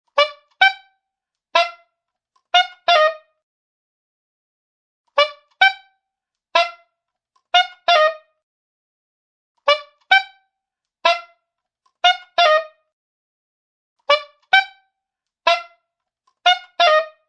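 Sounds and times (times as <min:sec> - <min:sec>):
saxophone squeaks: 0:00.1 - 0:01.0, 0:01.6 - 0:01.9, 0:02.5 - 0:03.4, 0:05.1 - 0:06.0, 0:06.6 - 0:06.9, 0:07.5 - 0:08.4, 0:09.7 - 0:10.4, 0:11.0 - 0:11.4, 0:12.0 - 0:12.8, 0:14.1 - 0:14.8, 0:15.5 - 0:15.8, 0:16.4 - 0:17.2.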